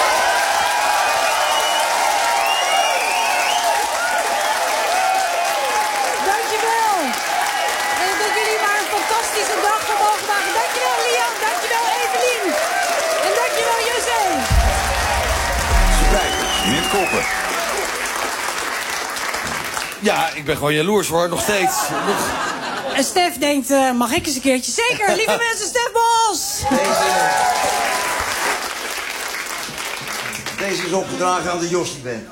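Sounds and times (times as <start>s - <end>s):
audience applause: 0.0s - 20.4s, 26.6s - 31.4s
speech: 20.0s - 27.8s, 30.6s - 32.3s
laughter: 21.6s - 23.2s, 24.8s - 25.8s.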